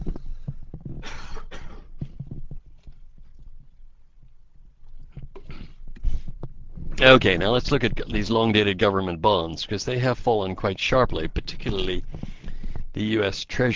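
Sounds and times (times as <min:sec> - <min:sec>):
scattered low clicks and thumps: 0:00.0 - 0:08.7, 0:11.1 - 0:13.0
short harsh coughs: 0:01.0 - 0:01.9
speech: 0:07.0 - 0:12.3, 0:13.0 - 0:13.7.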